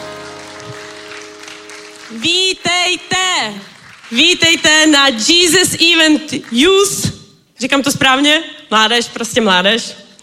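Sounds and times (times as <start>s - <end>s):
audience applause: 0.0s - 4.4s
speech: 2.1s - 10.0s.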